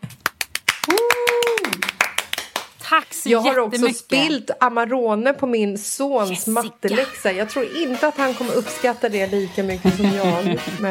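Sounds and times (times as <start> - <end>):
applause: 0.0 - 2.9
speech: 2.9 - 10.8
laughter: 9.8 - 10.8.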